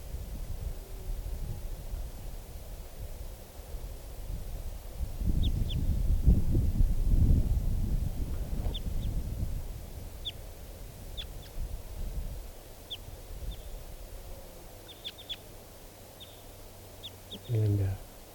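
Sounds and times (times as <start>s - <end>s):
low wind-like rumble: 0.0s - 14.4s
wild bird calling from treetop: 14.8s - 15.5s, 16.1s - 18.0s.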